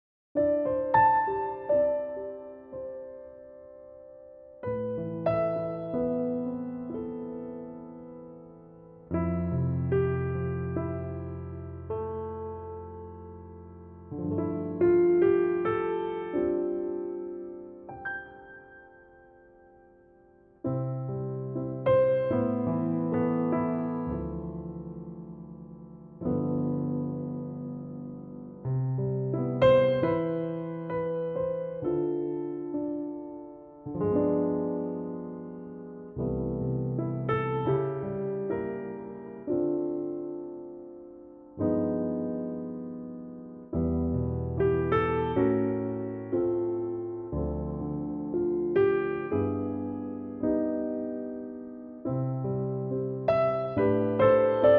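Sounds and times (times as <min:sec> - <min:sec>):
piano note C: 0:00.4 - 0:54.7.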